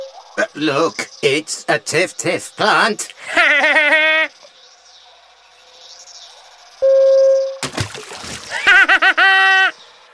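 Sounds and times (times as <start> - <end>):
speech: 0.4 - 3.9
laughter: 0.4 - 4.5, 8.2 - 9.8
someone falling into a pond with a splash: 7.6 - 8.9.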